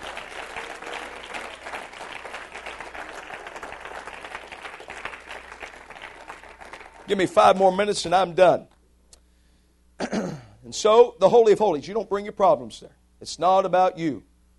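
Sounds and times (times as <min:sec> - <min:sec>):
audience clapping hands: 0:00.0 - 0:08.0
speech: 0:07.1 - 0:08.7, 0:10.7 - 0:14.3.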